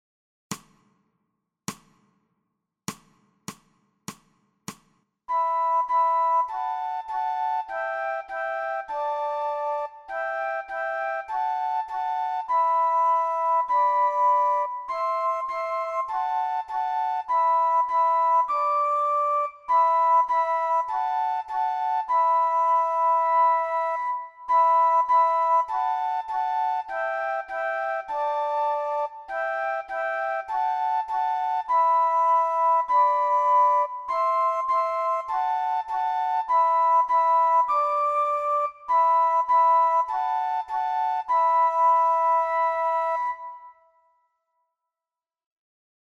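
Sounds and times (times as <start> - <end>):
two flutes: 4.1 - 44.2.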